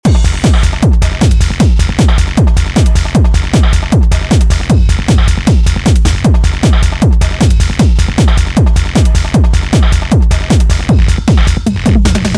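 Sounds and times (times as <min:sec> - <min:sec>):
techno music: 0:00.0 - 0:12.3.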